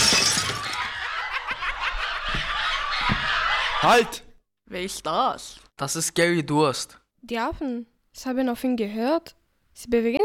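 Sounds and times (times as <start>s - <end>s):
tinkling, clattering glass shards: 0.0s - 0.8s
shelf crashing down: 0.0s - 1.0s
glass shattering: 0.0s - 1.1s
laughter: 0.1s - 4.3s
speech: 3.8s - 10.2s.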